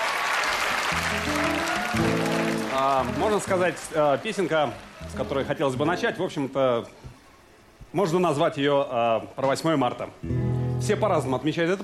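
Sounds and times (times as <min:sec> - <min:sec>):
audience applause: 0:00.0 - 0:06.3
speech: 0:01.3 - 0:02.2, 0:02.8 - 0:07.1, 0:07.9 - 0:11.8.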